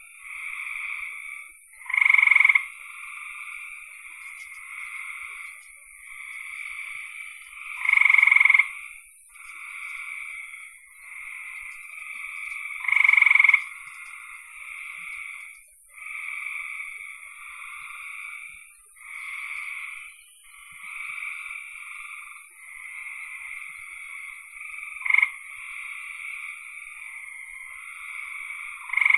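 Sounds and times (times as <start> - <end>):
frogs trilling in chorus: 0.0 - 29.1
faint clicks: 4.1 - 6.5, 9.3 - 10.2, 11.6 - 12.8, 13.4 - 14.4.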